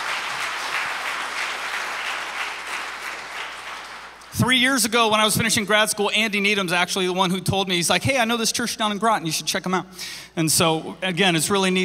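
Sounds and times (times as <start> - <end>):
audience applauding: 0.0 - 4.3
speech: 4.3 - 11.8.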